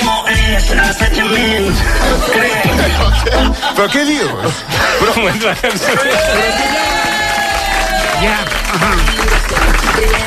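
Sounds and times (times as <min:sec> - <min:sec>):
speech: 0:00.6 - 0:07.2, 0:08.2 - 0:10.2
laughter: 0:01.1 - 0:09.9
audience applauding: 0:05.3 - 0:10.2.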